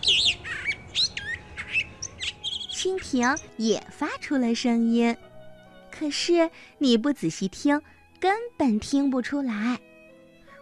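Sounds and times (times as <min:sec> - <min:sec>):
magpie chattering: 0:00.0 - 0:03.8
speech: 0:02.8 - 0:05.3, 0:06.0 - 0:09.9.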